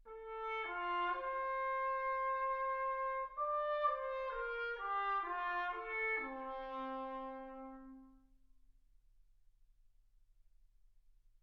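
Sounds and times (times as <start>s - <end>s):
trumpet: 0.0s - 8.3s.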